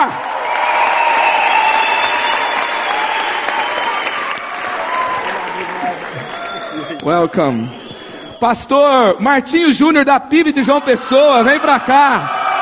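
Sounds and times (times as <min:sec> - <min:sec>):
audience applause: 0:00.0 - 0:08.1
speech: 0:07.0 - 0:07.8, 0:08.4 - 0:12.4.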